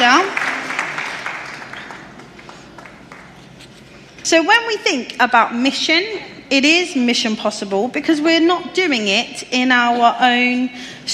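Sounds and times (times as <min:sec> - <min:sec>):
audience applause: 0:00.0 - 0:03.4
speech: 0:04.3 - 0:11.1.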